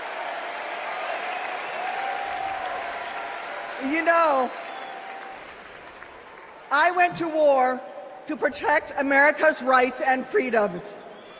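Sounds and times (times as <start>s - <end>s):
faint cheering: 0.0s - 6.0s
large convention crowd applauding: 0.0s - 7.0s
speech: 3.8s - 4.7s, 6.7s - 11.0s.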